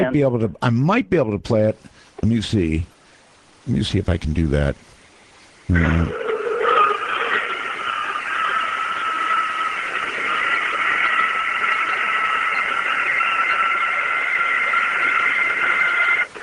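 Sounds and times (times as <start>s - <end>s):
speech: 0.0s - 2.9s, 3.6s - 4.9s, 5.7s - 6.2s
recorded intense scream: 5.8s - 16.4s.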